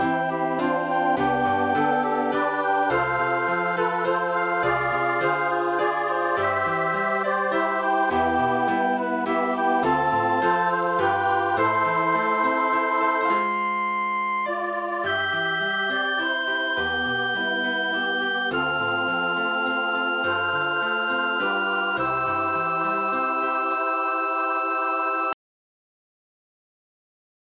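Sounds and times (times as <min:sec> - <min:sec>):
flute or violin: 0:00.0 - 0:25.4
three-part female choir singing: 0:00.7 - 0:08.6, 0:09.2 - 0:13.4.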